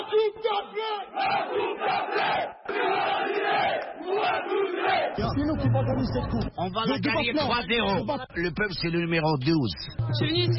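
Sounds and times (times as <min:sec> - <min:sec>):
large crowd of football supporters chanting and cheering: 0:00.0 - 0:05.8
speech: 0:00.4 - 0:02.9, 0:05.2 - 0:10.5.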